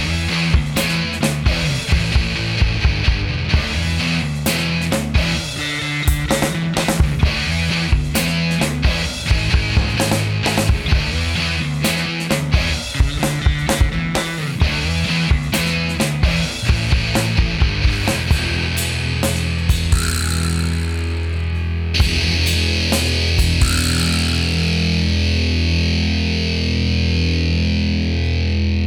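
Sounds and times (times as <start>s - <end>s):
effects pedal test: 0.0s - 28.8s.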